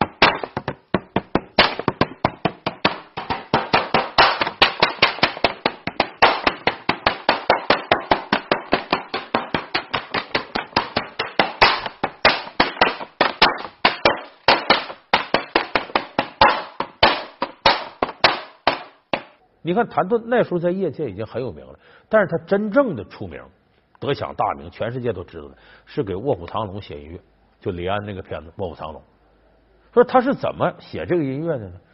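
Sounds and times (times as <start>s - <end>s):
slapping kraft paper like a drum: 0.0s - 19.4s
speech: 19.7s - 29.1s, 30.0s - 31.9s.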